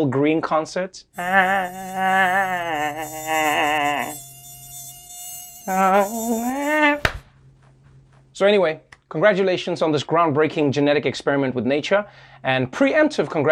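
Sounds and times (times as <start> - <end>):
speech: 0.0 - 4.3, 5.7 - 7.1, 8.4 - 13.5
mosquito buzzing close to the ear: 1.2 - 7.2
sharp smack: 7.0 - 7.3.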